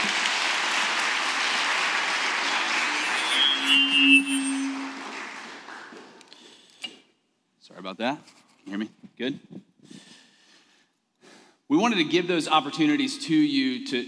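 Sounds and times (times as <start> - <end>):
audience applause: 0.0 - 6.3
speech: 7.9 - 9.7, 11.7 - 14.0.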